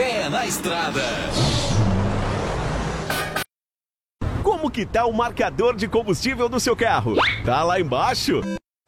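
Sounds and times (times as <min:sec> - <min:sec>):
truck engine rumbling: 0:00.0 - 0:03.4
speech: 0:00.3 - 0:01.9, 0:04.6 - 0:08.6.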